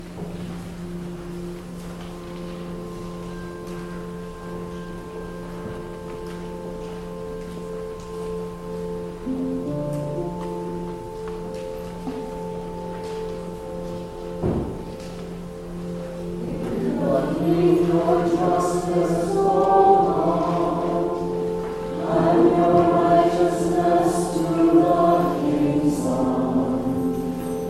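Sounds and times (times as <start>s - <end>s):
singing bells: 0.0s - 27.6s.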